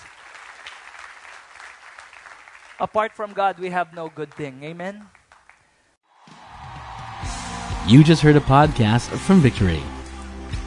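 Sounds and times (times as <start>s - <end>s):
audience clapping: 0.0s - 10.6s
speech: 2.8s - 5.2s, 7.9s - 10.0s.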